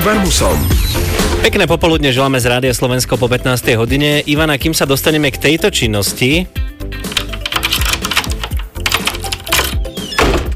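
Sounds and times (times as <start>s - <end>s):
speech: 0.0s - 7.1s
door lock or handle clicking and rattling: 7.1s - 10.5s.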